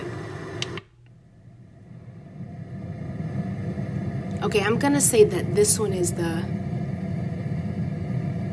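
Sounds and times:
clothes dryer hum: 0.0s - 8.5s
speech: 4.4s - 6.6s.

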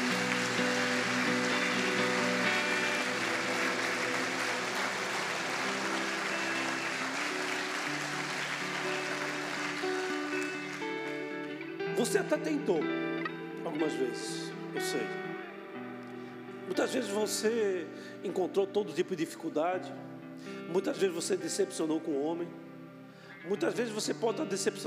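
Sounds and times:
audience applause: 0.0s - 11.6s
sustained musical chords: 0.0s - 16.8s
speech: 12.0s - 13.0s, 13.8s - 15.3s, 16.7s - 22.6s, 23.4s - 24.8s.

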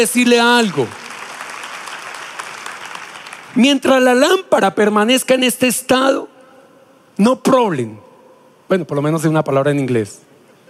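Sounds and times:
speech: 0.0s - 1.0s, 3.6s - 6.3s, 7.2s - 8.0s, 8.7s - 10.6s
audience applause: 0.6s - 3.6s.

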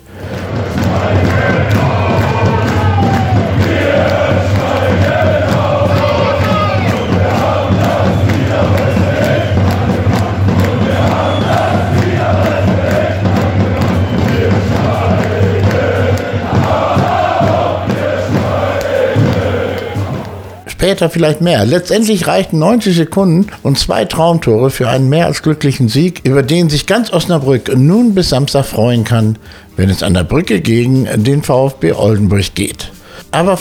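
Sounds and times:
football fans cheering in stadium: 0.0s - 21.4s
speech: 21.0s - 33.5s.

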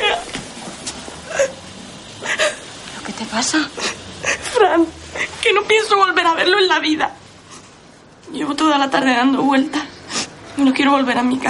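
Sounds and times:
woman bursting into tears in the 1998 drama film Mensaka: 1.2s - 1.6s, 2.2s - 2.7s, 3.7s - 5.4s
speech: 3.2s - 4.0s, 4.6s - 7.2s, 8.5s - 9.8s, 10.6s - 11.4s.

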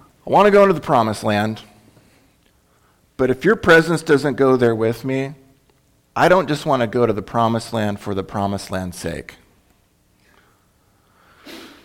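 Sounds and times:
speech: 0.3s - 1.7s, 3.2s - 5.4s, 6.2s - 9.4s
person sneezing: 11.3s - 11.8s.

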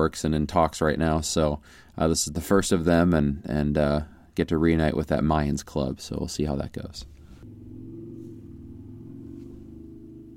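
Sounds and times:
speech: 0.0s - 7.2s
motorcycle driving past: 7.2s - 10.3s.

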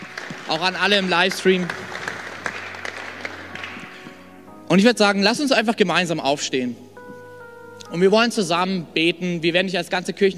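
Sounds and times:
audience applause: 0.0s - 4.1s
speech: 0.5s - 1.8s, 4.7s - 6.8s, 7.9s - 10.3s.

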